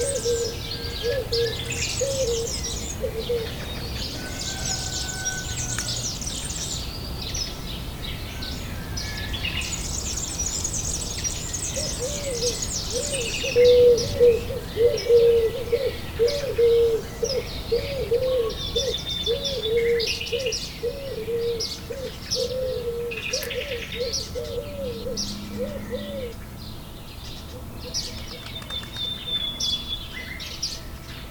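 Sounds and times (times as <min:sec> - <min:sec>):
low rapidly repeated cooing or warbling note: 0:00.0 - 0:05.8, 0:11.8 - 0:26.4
birds chirping and twittering: 0:00.0 - 0:31.2.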